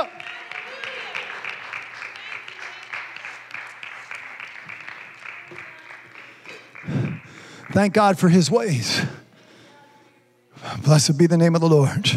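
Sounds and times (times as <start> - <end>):
audience clapping hands: 0.0 - 8.8
speech: 7.8 - 9.2, 10.9 - 12.1.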